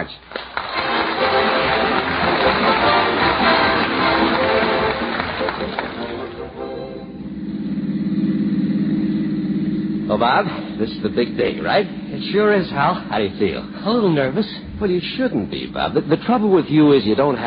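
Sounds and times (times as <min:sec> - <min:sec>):
car engine rumbling while driving: 0:01.0 - 0:17.4
speech: 0:10.2 - 0:17.4.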